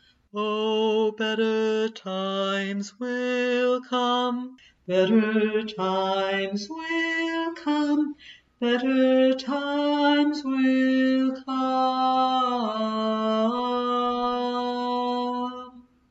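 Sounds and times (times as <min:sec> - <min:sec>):
tenor voice singing: 0:00.4 - 0:15.8.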